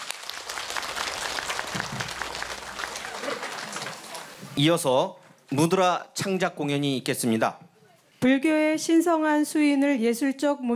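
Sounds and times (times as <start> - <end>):
applause: 0.0 - 4.6
speech: 4.6 - 10.7.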